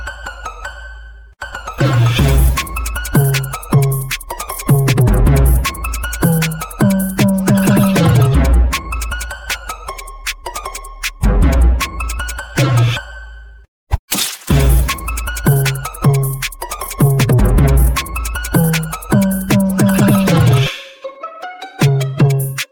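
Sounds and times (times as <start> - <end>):
trap remix: 1.9 - 12.5, 14.5 - 21.1, 21.8 - 22.7.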